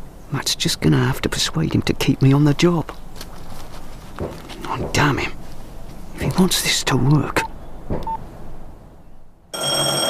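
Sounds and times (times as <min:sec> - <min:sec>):
speech: 0:00.3 - 0:03.0, 0:06.4 - 0:08.1
telephone ringing with loud steady electronic ring: 0:09.5 - 0:10.0.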